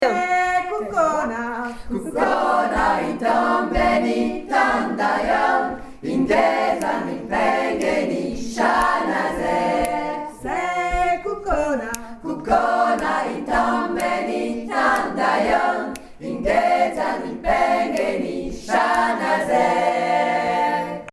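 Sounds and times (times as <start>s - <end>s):
three voices singing: 0.0s - 21.1s.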